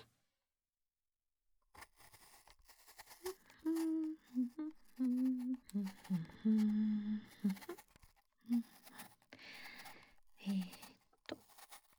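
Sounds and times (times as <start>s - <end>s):
apple being peeled: 1.8s - 11.9s
chewing apple: 2.6s - 11.9s.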